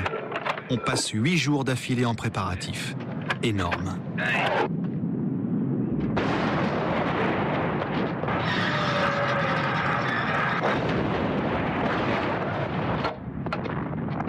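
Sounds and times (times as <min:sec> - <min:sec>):
speech: 0:00.7 - 0:04.8
75 mm field gun artillery barrage: 0:03.0 - 0:14.2.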